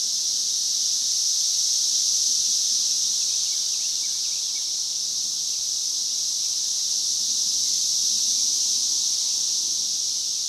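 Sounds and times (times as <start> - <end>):
cicada continuous high hissing whine: 0.0 - 10.4.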